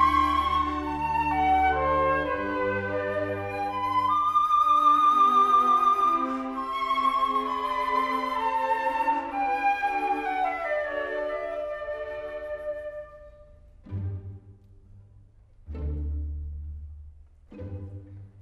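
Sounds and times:
solo flute: 0.0 - 13.8.

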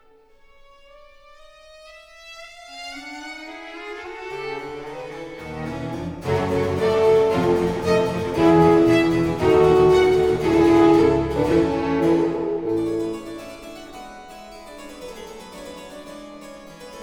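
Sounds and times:
keyboard concerto allegro: 5.6 - 13.8.

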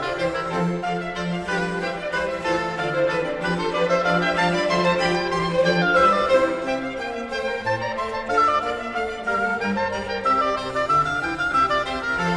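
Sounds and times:
oboe concerto in F major: 0.0 - 12.3.

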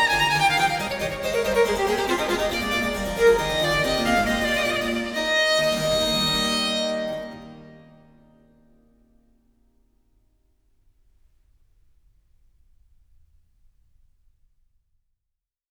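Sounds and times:
harpsichord in a sonata allegro: 0.0 - 6.8
violin in a sonata allegro: 0.0 - 8.6.

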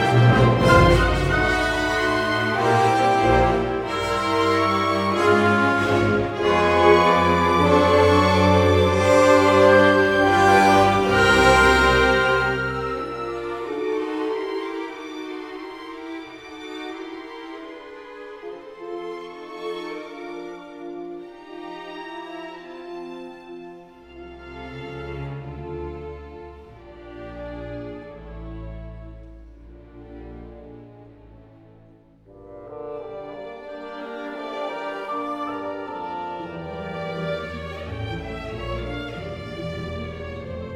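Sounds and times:
piano concerto: 0.0 - 17.6, 32.3 - 40.7.

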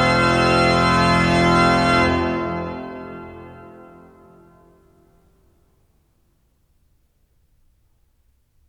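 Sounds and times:
organ fugue in F major: 0.0 - 5.0.

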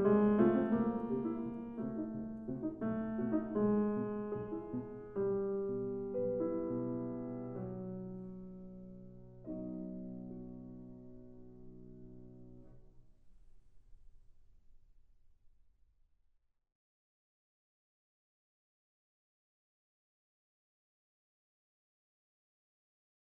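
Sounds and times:
piano capriccio in B minor: 0.0 - 13.0.

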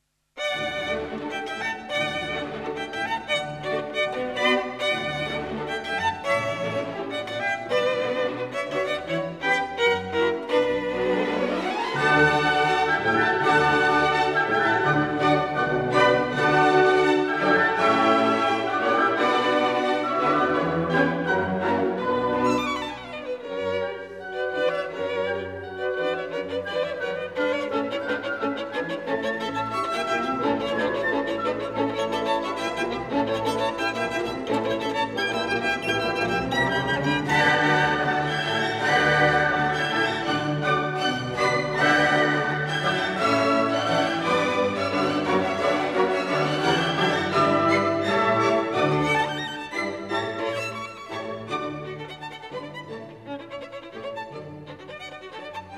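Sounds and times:
violin concerto allegro movement: 0.4 - 55.7.

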